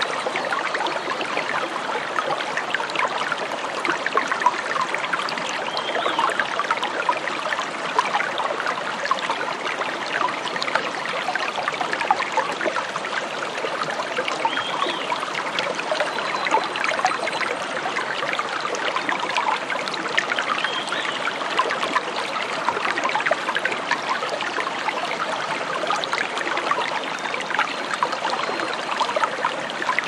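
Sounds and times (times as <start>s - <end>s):
brook water flowing: 0.0s - 30.0s.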